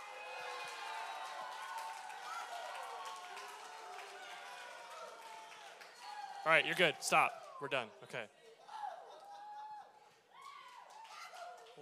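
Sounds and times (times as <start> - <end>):
clapping: 0.0 - 7.6, 10.1 - 11.8
speech: 6.4 - 8.4.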